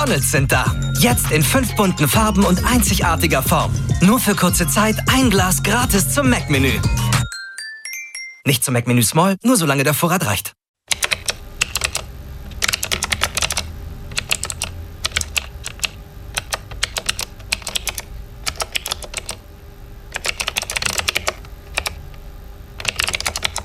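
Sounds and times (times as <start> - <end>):
speech: 0.0 - 7.1, 8.5 - 10.6
typing on a computer keyboard: 10.9 - 19.4, 20.1 - 22.0, 22.8 - 23.6.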